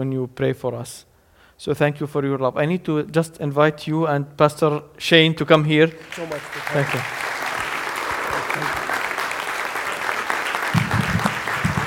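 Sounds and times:
speech: 0.0s - 7.3s
audience standing and clapping: 5.8s - 11.8s.

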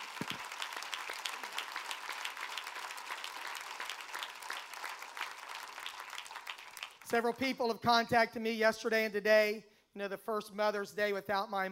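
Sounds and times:
audience applauding: 0.0s - 7.2s
speech: 7.1s - 11.7s.

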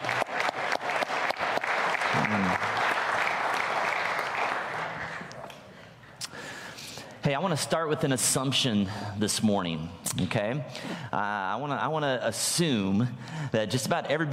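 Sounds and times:
sustained applause from a large audience: 0.0s - 5.5s
speech: 2.2s - 2.7s, 7.4s - 14.3s.

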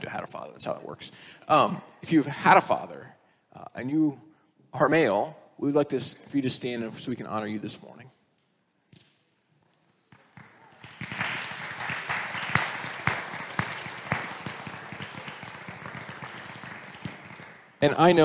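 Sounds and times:
speech: 0.0s - 8.2s, 17.8s - 18.2s
audience applause for fathers standing: 10.2s - 18.2s.

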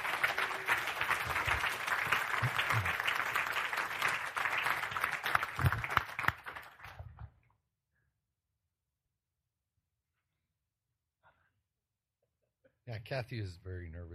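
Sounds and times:
round of applause: 0.0s - 7.4s
speech: 13.1s - 14.1s.

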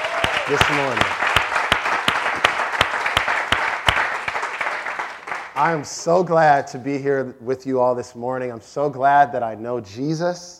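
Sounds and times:
audience clapping: 0.0s - 5.9s
speech: 0.5s - 1.3s, 5.6s - 10.5s.

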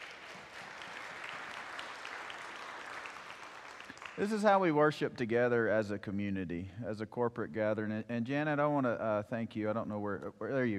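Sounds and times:
audience applause: 0.0s - 4.6s
speech: 4.2s - 10.7s.

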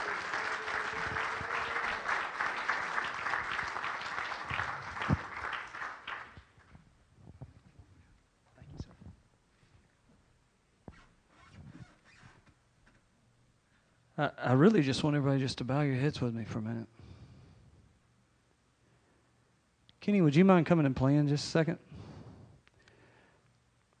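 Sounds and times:
audience applause: 0.0s - 6.6s
speech: 14.2s - 17.0s, 20.1s - 21.9s.

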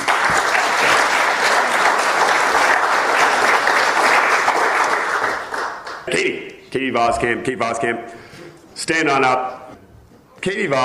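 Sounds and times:
audience applause: 0.0s - 6.1s
speech: 6.8s - 8.2s, 8.8s - 9.6s, 10.4s - 10.8s.

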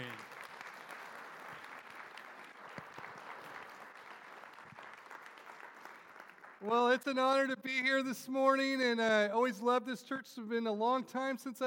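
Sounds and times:
church audience applause welcoming a pastor to the stage: 0.0s - 7.1s
speech: 6.6s - 11.6s.

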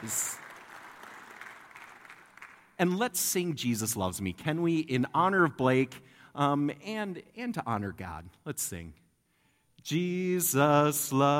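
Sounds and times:
speech: 0.0s - 0.3s, 2.8s - 9.0s, 9.8s - 11.3s
audience applause: 0.0s - 2.7s.

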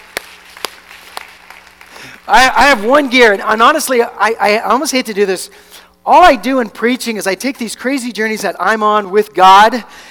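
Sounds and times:
audience hand clapping: 0.0s - 2.3s
speech: 2.3s - 10.0s.

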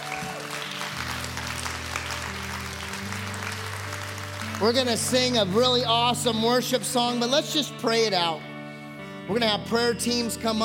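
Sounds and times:
audience applause: 0.0s - 5.9s
speech: 4.6s - 8.5s, 9.3s - 10.6s.

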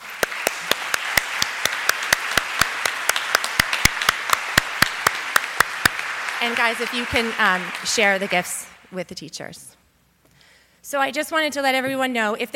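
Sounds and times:
audience applause for teachers: 0.0s - 8.9s
speech: 6.4s - 9.8s, 10.9s - 12.5s.

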